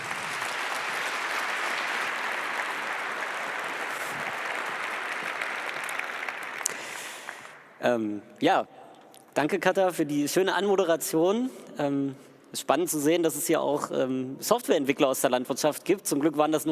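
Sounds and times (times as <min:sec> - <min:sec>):
audience applause: 0:00.0 - 0:07.7
speech: 0:07.8 - 0:08.8, 0:09.4 - 0:16.7.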